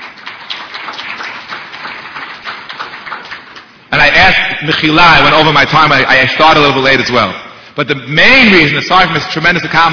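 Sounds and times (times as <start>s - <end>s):
crowd applauding: 0.0s - 4.1s
speech: 4.3s - 9.9s.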